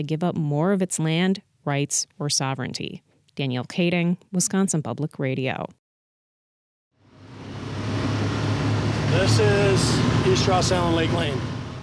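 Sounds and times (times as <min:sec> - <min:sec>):
speech: 0:00.0 - 0:05.8, 0:09.2 - 0:11.6
UTV engine drone driving down a road: 0:07.0 - 0:11.8.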